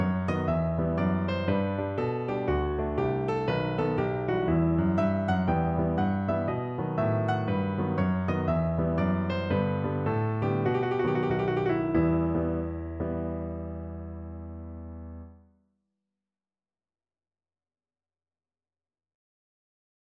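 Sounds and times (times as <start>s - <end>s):
baroque bourree piano duet: 0.0s - 15.4s.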